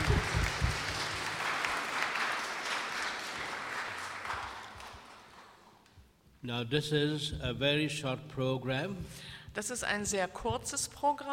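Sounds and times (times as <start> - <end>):
audience applause welcoming a speaker: 0.0 - 5.8
speech: 6.4 - 11.3.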